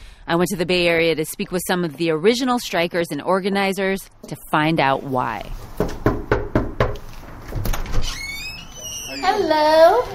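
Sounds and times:
speech: 0.3s - 5.8s, 9.2s - 10.1s
firm knocking on a front door: 5.8s - 7.0s
high-pitched squeak: 8.0s - 9.6s.

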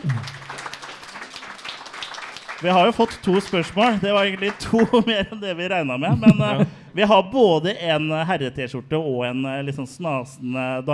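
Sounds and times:
speech: 0.0s - 0.4s, 2.6s - 10.9s
audience clapping: 0.0s - 5.3s
laughter: 2.6s - 6.8s.

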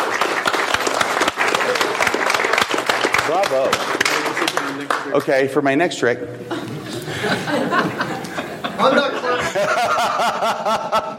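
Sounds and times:
audience applause: 0.0s - 5.3s
speech: 3.3s - 3.8s, 5.1s - 6.6s, 7.2s - 8.2s, 8.8s - 11.1s
laughter: 6.4s - 11.1s.

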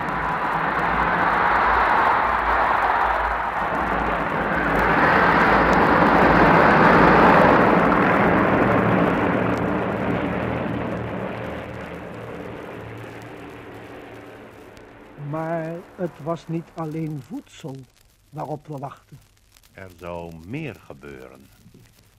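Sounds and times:
heavy bomber aircraft engines droning overhead: 0.0s - 17.0s
speech: 16.2s - 21.6s.

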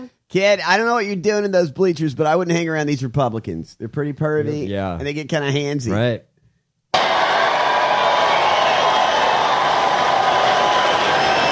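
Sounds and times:
speech: 0.0s - 6.3s
crowd cheering: 6.9s - 11.5s.

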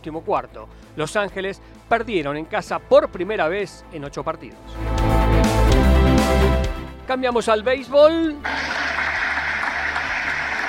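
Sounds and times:
speech: 0.0s - 5.5s, 6.3s - 8.8s
crowd applause for baseball player Shohei Ohtani: 8.5s - 10.6s.

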